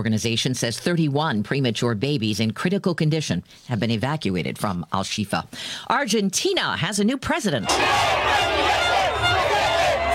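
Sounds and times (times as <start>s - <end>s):
speech: 0.0s - 9.4s
crowd cheering in the streets of Buenos Aires for Javier Milei: 7.6s - 10.1s.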